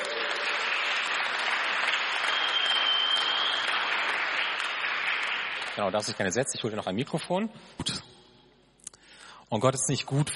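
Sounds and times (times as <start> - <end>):
applause: 0.0 - 6.8
speech: 5.8 - 8.0, 9.5 - 10.3.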